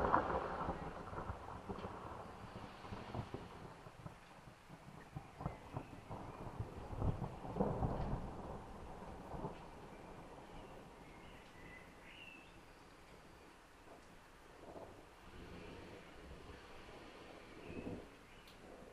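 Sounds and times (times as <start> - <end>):
thunder heard from bedroom window: 0.0 - 12.0, 13.9 - 18.9
birds heard from bedroom window: 4.8 - 8.1, 9.5 - 18.9.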